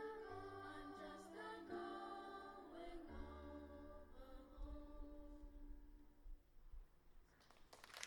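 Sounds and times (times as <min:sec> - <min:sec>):
lower-school choir singing a traditional USA song: 0:00.0 - 0:05.5.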